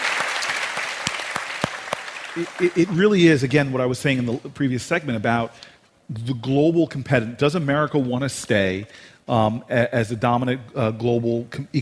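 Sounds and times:
audience applause: 0.0 - 3.7
speech: 2.4 - 11.8.

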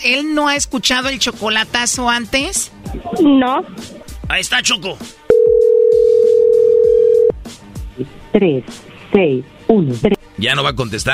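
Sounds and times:
speech: 0.0 - 5.2, 8.0 - 11.1
telephone dial tone while calling back: 5.3 - 7.3.

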